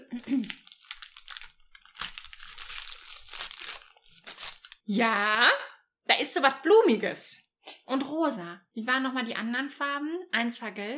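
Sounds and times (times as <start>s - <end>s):
speech: 0.1s - 0.6s, 4.9s - 10.9s
paper wrapping of a book package crinkling and tearing: 0.2s - 4.9s.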